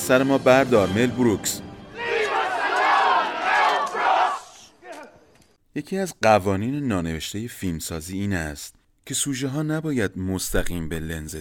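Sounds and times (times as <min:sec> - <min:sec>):
speech: 0:00.0 - 0:01.6, 0:05.8 - 0:11.3
besieged villagers shouting at camera: 0:01.9 - 0:05.3.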